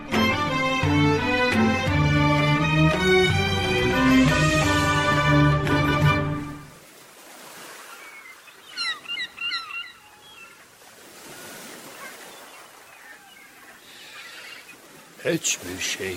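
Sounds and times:
sea waves: 0.0s - 16.1s
high squeaky chirping calls: 8.1s - 10.6s, 13.0s - 14.9s
speech: 15.3s - 16.1s.

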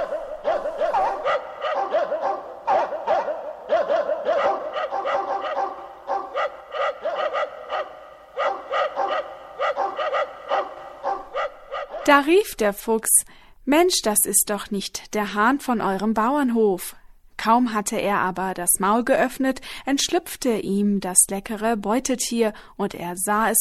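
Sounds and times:
dogs barking: 0.0s - 12.2s
speech: 12.1s - 23.6s.

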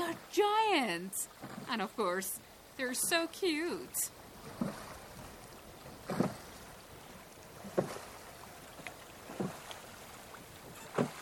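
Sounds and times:
light wind: 0.0s - 11.2s
oars rowing a small boat on quiet water in Iran: 0.0s - 11.2s
speech: 0.4s - 4.8s.

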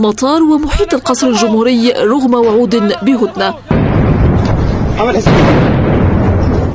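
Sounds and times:
speech: 0.0s - 3.7s, 5.0s - 5.9s
explosions: 3.7s - 6.7s
heavy weapons fire: 3.7s - 6.7s.

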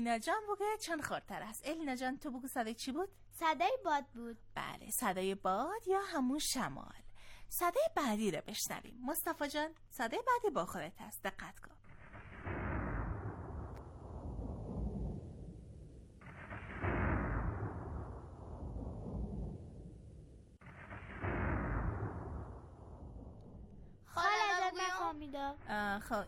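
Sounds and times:
speech: 0.0s - 11.8s, 24.2s - 26.2s
thunder: 12.0s - 24.1s.

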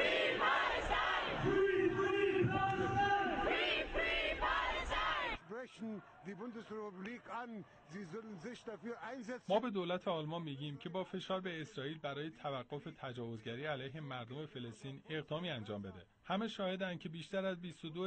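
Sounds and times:
protest crowd shouting at a march in Germany: 0.0s - 5.4s
speech: 6.0s - 18.0s.

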